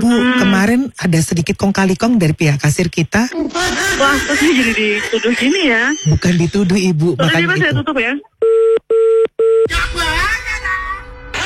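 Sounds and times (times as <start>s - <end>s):
speech: 0.1s - 10.8s
laughter: 3.3s - 5.9s
telephone dialing tones: 8.4s - 9.7s.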